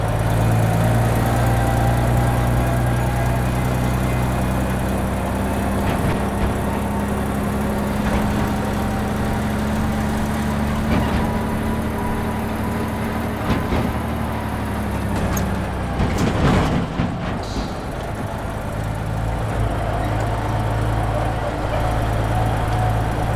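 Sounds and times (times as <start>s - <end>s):
dump truck driving: 0.0s - 23.3s.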